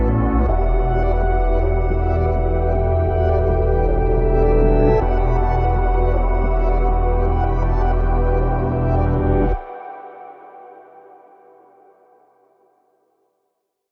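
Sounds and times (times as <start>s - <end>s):
granular ambient drone: 0.0s - 10.6s.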